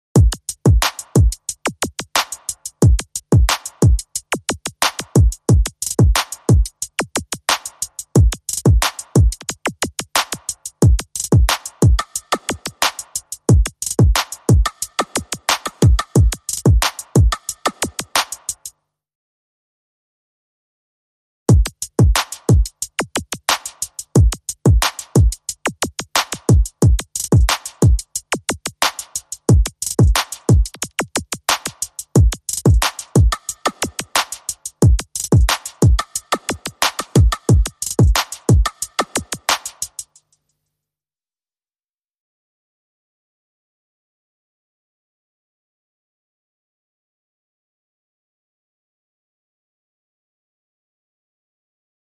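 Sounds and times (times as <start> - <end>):
drums: 0.1 - 18.7, 21.5 - 40.2.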